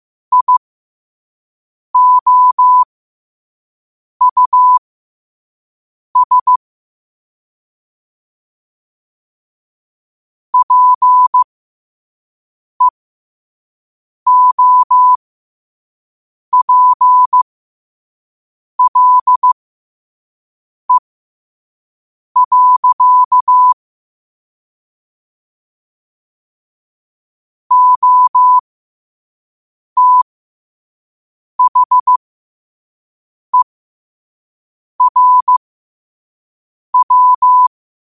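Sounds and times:
morse code at 5 wpm: 0.3s - 0.6s, 2.0s - 2.9s, 4.2s - 4.8s, 6.2s - 6.6s, 10.6s - 11.4s, 14.3s - 15.2s, 16.6s - 17.4s, 18.8s - 19.6s, 22.4s - 23.8s, 27.7s - 28.6s, 30.0s - 30.2s, 31.6s - 32.2s, 35.0s - 35.6s, 37.0s - 37.7s.

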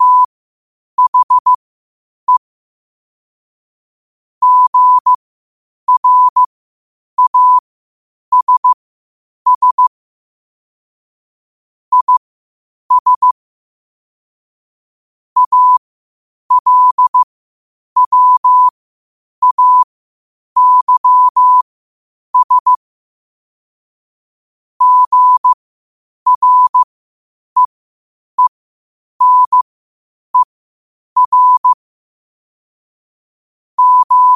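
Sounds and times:
morse code at 5 wpm: 0.0s - 0.3s, 1.0s - 1.6s, 4.4s - 5.2s, 5.9s - 6.5s, 7.2s - 7.6s, 8.3s - 8.8s, 9.5s - 9.9s, 11.9s - 12.2s, 12.9s - 13.4s, 15.4s - 15.8s, 16.5s - 17.3s, 18.0s - 18.7s, 19.4s - 19.9s, 20.6s - 21.6s, 22.4s - 22.8s, 24.8s - 25.6s, 26.3s - 26.9s, 29.2s - 29.7s, 31.2s - 31.8s, 33.8s - 34.3s.

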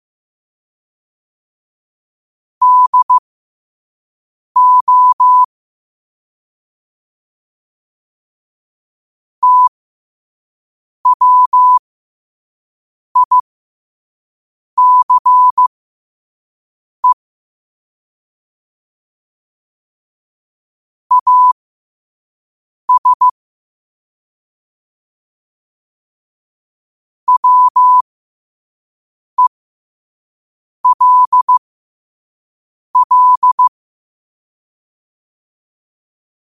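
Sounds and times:
morse code at 5 wpm: 2.6s - 3.2s, 4.6s - 5.5s, 9.4s - 9.7s, 11.1s - 11.8s, 13.2s - 13.4s, 14.8s - 15.7s, 21.1s - 21.6s, 22.9s - 23.4s, 27.3s - 28.0s, 30.8s - 31.6s, 33.0s - 33.7s.

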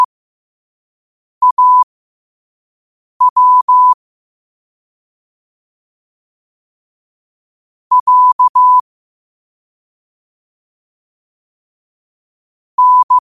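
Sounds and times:
morse code at 5 wpm: 1.4s - 1.8s, 3.2s - 4.0s, 7.9s - 8.8s, 12.8s - 13.2s.

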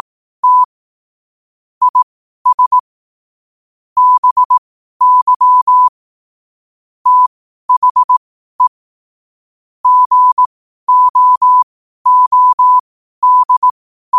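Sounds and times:
morse code at 5 wpm: 0.0s - 0.7s, 1.9s - 2.8s, 4.0s - 5.9s, 7.1s - 8.7s, 9.8s - 14.1s.

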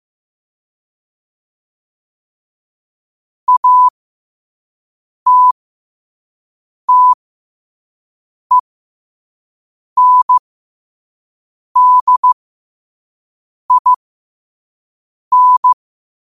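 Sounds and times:
morse code at 5 wpm: 3.5s - 3.9s, 5.3s - 5.6s, 6.9s - 7.2s, 10.0s - 10.4s, 11.8s - 12.4s, 13.7s - 14.0s, 15.3s - 15.8s.

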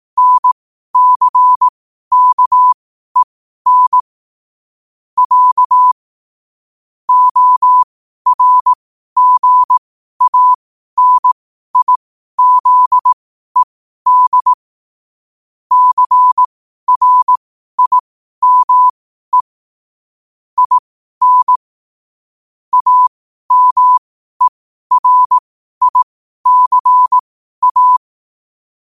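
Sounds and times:
morse code at 5 wpm: 0.2s - 4.0s, 5.2s - 6.0s, 7.1s - 14.6s, 15.7s - 19.5s, 20.6s - 21.6s, 22.7s - 28.0s.

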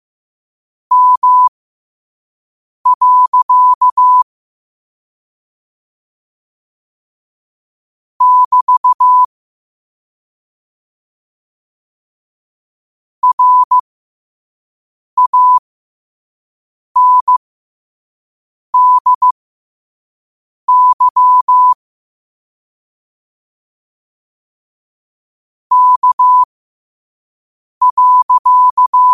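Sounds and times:
morse code at 5 wpm: 0.9s - 1.5s, 2.9s - 4.2s, 8.2s - 9.3s, 13.2s - 13.8s, 15.2s - 15.6s, 17.0s - 17.4s, 18.8s - 19.4s, 20.7s - 21.8s, 25.7s - 26.5s, 27.8s - 29.1s.

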